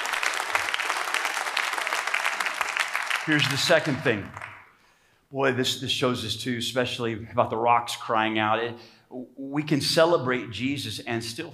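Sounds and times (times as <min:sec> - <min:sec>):
audience applause: 0:00.0 - 0:04.6
speech: 0:03.2 - 0:04.5, 0:05.3 - 0:11.5.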